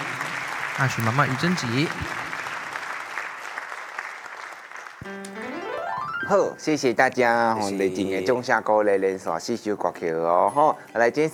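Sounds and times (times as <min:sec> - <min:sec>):
group clapping: 0:00.0 - 0:06.2
speech: 0:00.8 - 0:02.2, 0:06.3 - 0:11.3
sustained musical tone: 0:05.0 - 0:07.0.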